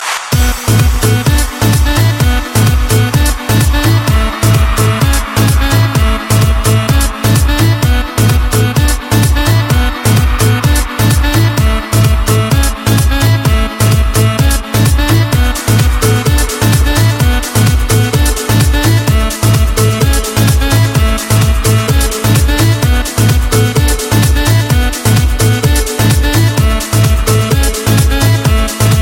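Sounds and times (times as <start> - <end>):
electro sound: 0.0 - 29.0.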